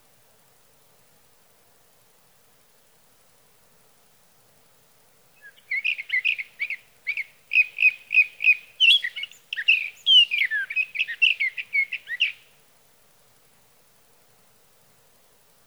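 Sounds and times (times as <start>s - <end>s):
sage thrasher song: 5.4s - 12.4s.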